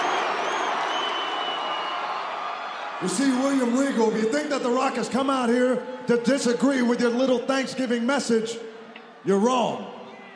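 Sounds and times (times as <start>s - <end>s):
shrill whistles from the crowd: 0.0s - 2.9s
hometown crowd cheering in South Florida: 0.0s - 10.3s
speech: 3.0s - 10.0s.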